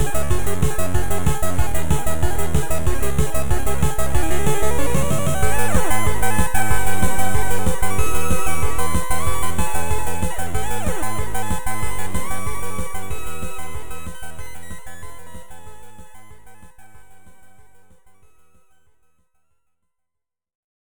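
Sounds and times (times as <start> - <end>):
chiptune music: 0.0 - 15.5.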